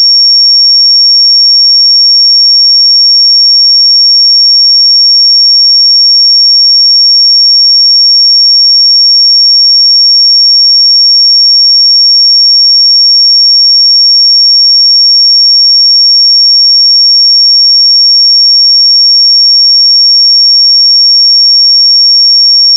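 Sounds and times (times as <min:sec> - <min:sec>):
pure sine tone at 5519 Hz: 0:00.0 - 0:22.7.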